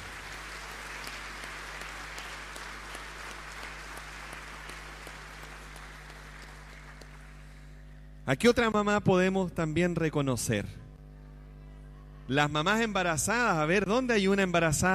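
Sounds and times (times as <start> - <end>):
audience applause: 0.0 - 7.5
speech: 8.3 - 10.8, 12.3 - 14.9.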